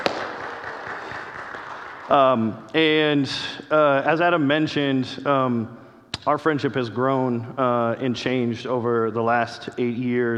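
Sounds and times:
audience clapping: 0:00.0 - 0:02.5
speech: 0:02.1 - 0:10.3.

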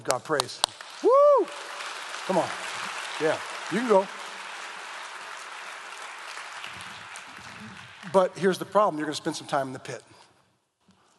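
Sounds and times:
speech: 0:00.0 - 0:01.7, 0:02.3 - 0:04.2, 0:08.1 - 0:10.2
audience clapping: 0:00.0 - 0:09.6
audience cheering: 0:01.0 - 0:07.9.

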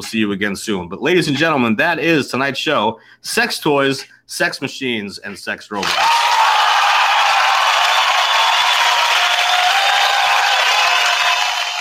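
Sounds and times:
speech: 0:00.0 - 0:06.2
audience applause: 0:05.8 - 0:11.7.

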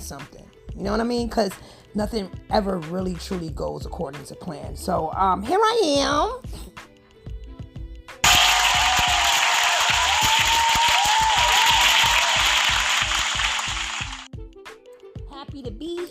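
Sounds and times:
speech: 0:00.1 - 0:06.9
audience applause: 0:08.2 - 0:14.3.

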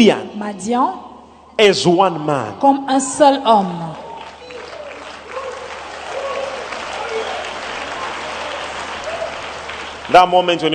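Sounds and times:
speech: 0:00.0 - 0:04.0, 0:10.1 - 0:10.7
audience clapping: 0:03.7 - 0:10.7.

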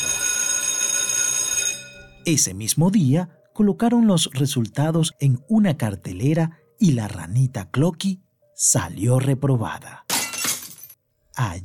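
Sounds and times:
school bell ringing end of exam: 0:00.0 - 0:02.2
speech: 0:02.3 - 0:10.1, 0:11.4 - 0:11.6.

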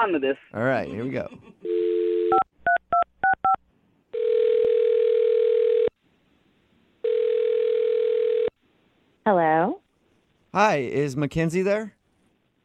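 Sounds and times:
speech: 0:00.0 - 0:02.5, 0:09.3 - 0:09.8, 0:10.6 - 0:12.0
telephone ringing: 0:04.1 - 0:05.9, 0:07.0 - 0:08.5.

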